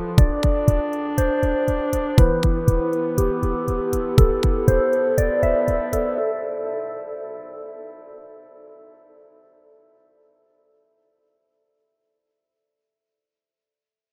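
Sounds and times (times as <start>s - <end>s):
instrumental music: 0.0s - 8.7s.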